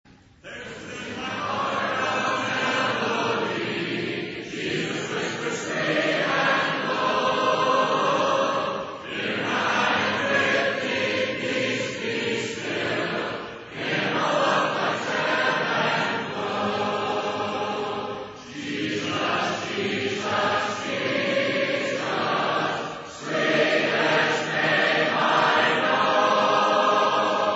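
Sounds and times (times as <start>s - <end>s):
a cappella hymn: 0.3s - 27.5s.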